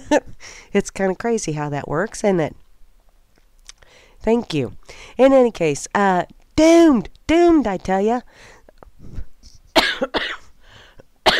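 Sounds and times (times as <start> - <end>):
speech: 0.1 - 2.6, 4.2 - 9.2
coughing: 9.8 - 10.5.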